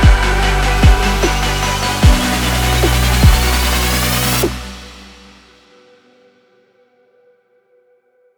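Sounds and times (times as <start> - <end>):
stylish lifestyle future bass music: 0.0 - 5.5.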